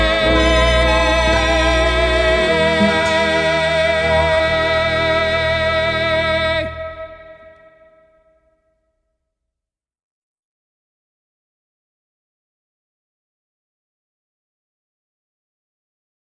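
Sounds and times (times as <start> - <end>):
national anthem: 0.0 - 7.7.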